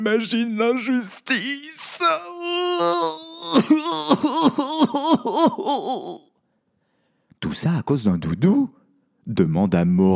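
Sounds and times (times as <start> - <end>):
speech: 0.0 - 6.3, 7.4 - 10.1
sobbing: 0.1 - 6.4.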